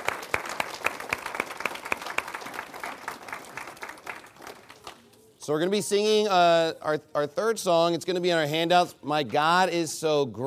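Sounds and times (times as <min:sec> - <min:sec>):
audience applause: 0:00.0 - 0:05.1
speech: 0:05.5 - 0:10.4.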